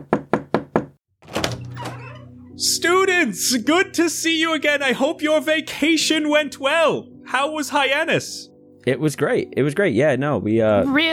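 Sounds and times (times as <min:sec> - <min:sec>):
knocks on an office door: 0:00.0 - 0:01.0
speech: 0:02.6 - 0:11.1.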